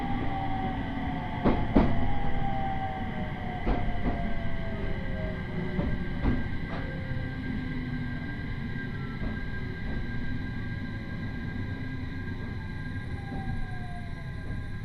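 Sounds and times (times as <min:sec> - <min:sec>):
train on the Uetsu Main Line from Ugo-Honjo to Akita: 0:00.0 - 0:14.8.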